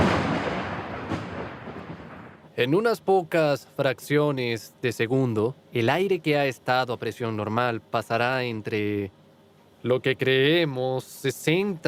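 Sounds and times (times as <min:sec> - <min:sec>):
thunder from lightning: 0:00.0 - 0:02.5
speech: 0:02.6 - 0:09.2, 0:09.8 - 0:11.8.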